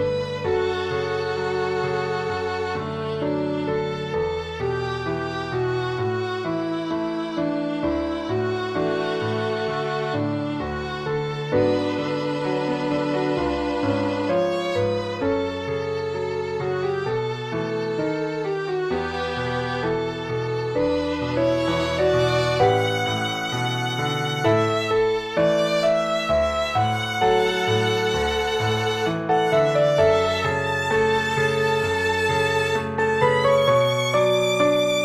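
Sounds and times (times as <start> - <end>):
piano: 0.0 - 35.0
violin: 0.0 - 35.0.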